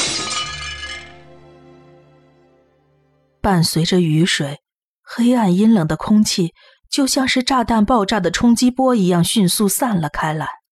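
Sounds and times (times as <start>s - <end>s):
tinkling glass shards: 0.0s - 1.2s
glass jar smashed on the ground: 0.0s - 1.4s
speech: 3.4s - 10.6s.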